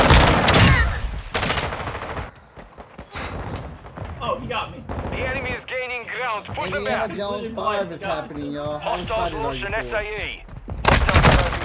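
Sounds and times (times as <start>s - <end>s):
video game pistol gunfire in an online shooter match: 0.0s - 5.9s, 10.7s - 11.6s
speech: 6.4s - 10.5s.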